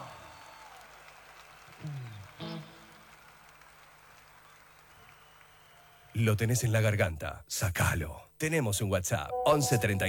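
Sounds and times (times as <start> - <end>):
small audience clapping: 0.0 - 6.2
speech: 6.2 - 10.0.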